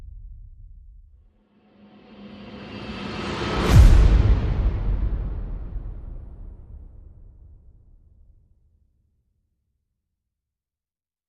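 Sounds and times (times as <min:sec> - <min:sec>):
percussion: 0:00.0 - 0:08.0.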